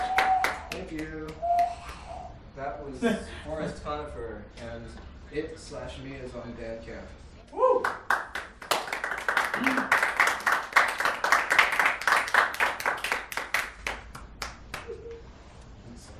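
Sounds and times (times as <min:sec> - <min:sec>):
audience clapping: 0:00.0 - 0:01.8, 0:07.8 - 0:15.0
speech: 0:02.8 - 0:08.0.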